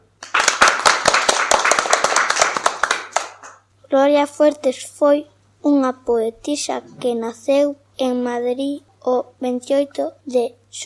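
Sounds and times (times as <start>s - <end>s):
audience applause for children: 0.2s - 3.6s
speech: 3.9s - 10.8s.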